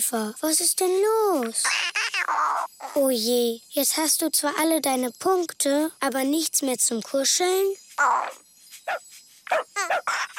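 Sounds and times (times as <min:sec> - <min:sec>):
speech: 0:00.0 - 0:10.3
dog sound: 0:08.2 - 0:10.3.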